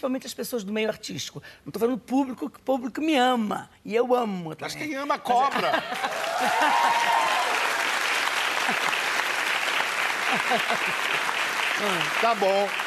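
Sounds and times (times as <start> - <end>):
speech: 0.0 - 7.3, 10.4 - 12.8
laughter: 5.4 - 7.4, 10.2 - 11.3
audience applause: 5.8 - 12.8.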